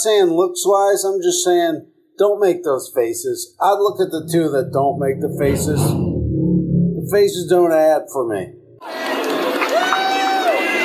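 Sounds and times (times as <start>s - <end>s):
speech: 0.0s - 6.1s, 7.1s - 9.2s
crowd: 8.8s - 10.8s.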